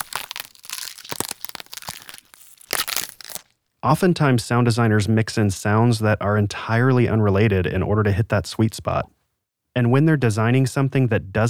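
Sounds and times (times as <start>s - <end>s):
celery and crunchy vegetables snapping as bone-break foley: 0.0s - 3.5s
speech: 3.8s - 9.2s, 9.8s - 11.4s.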